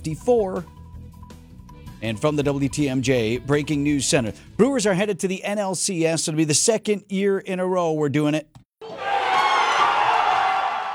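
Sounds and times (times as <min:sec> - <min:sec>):
speech: 0:00.0 - 0:00.8, 0:02.0 - 0:08.6
Brewers baseball fans cheering during a Game 4 playoff against the Padres: 0:08.8 - 0:10.9.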